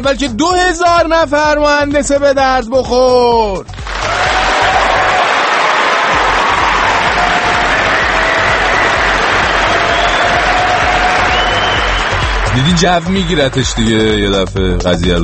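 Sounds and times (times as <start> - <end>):
speech: 0.0 - 4.3, 12.6 - 15.2
audience applauding at a meeting with Ahmadinejad: 3.8 - 14.2.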